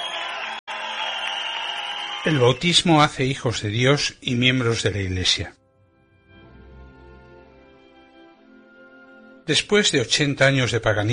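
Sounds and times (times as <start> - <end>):
audience applause: 0.0 - 3.2
speech: 2.2 - 5.6, 9.5 - 11.1.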